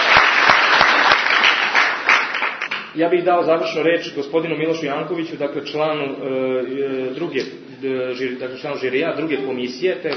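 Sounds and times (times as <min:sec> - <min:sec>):
large audience applauding at a competition ceremony: 0:00.0 - 0:02.9
speech: 0:03.0 - 0:10.1.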